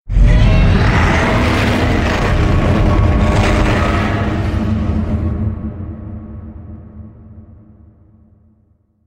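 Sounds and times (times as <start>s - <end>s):
Godzilla roar: 0.1s - 5.2s.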